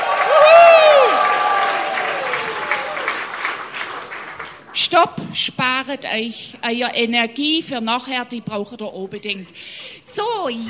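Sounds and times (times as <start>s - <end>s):
crowd applause and cheering: 0.0s - 4.7s
speech: 4.9s - 10.6s.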